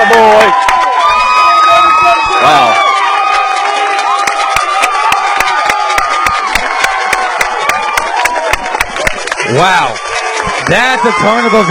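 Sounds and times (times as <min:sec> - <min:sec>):
baseball stadium crowd cheering: 0:00.0 - 0:11.7
clapping and whoops: 0:00.0 - 0:11.7
speech: 0:09.6 - 0:10.0, 0:10.6 - 0:11.7.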